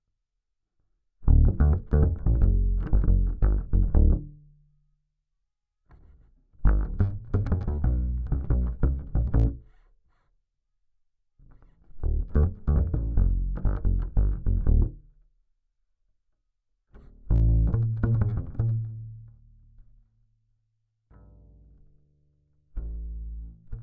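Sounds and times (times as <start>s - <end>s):
bass guitar recorded by direct input: 1.2s - 4.6s, 5.9s - 9.8s, 11.5s - 15.1s, 16.9s - 20.0s, 21.1s - 23.8s.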